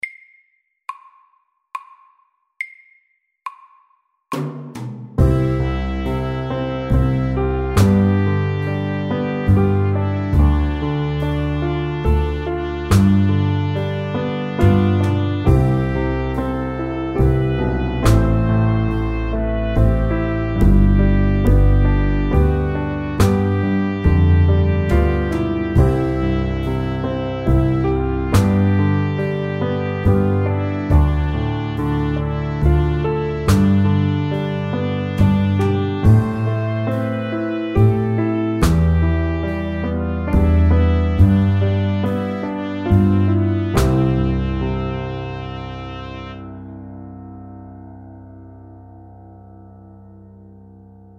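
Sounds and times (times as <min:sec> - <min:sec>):
soft rock music: 0:05.2 - 0:45.0.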